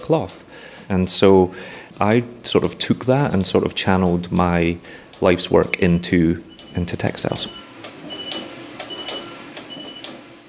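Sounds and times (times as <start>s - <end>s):
speech: 0.1s - 7.6s
knitting machine alarm signalling knitting ready: 5.6s - 10.4s.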